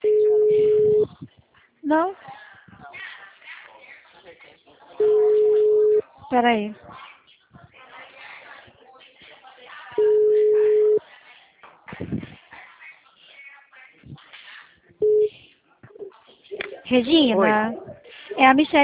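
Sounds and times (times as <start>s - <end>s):
telephone tones after a dropped call: 0.0s - 1.1s, 5.0s - 6.0s, 10.0s - 11.0s, 15.0s - 15.3s
speech: 1.9s - 2.3s, 6.3s - 7.0s, 16.9s - 18.8s.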